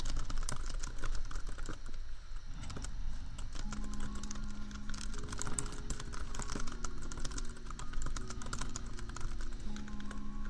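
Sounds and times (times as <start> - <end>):
low laptop fan hum: 0.0 - 10.4
rapid keyboard typing: 0.0 - 10.4.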